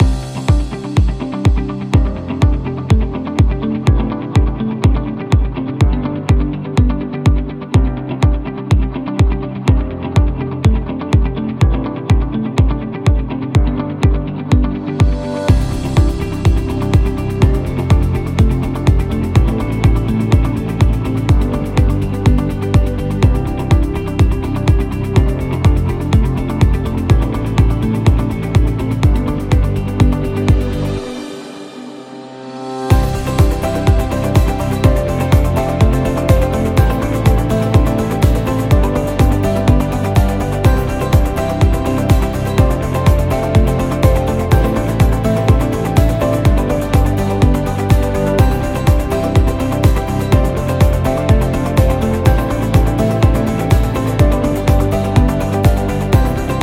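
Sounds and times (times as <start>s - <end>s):
uplifting music loop: 0.0s - 56.6s.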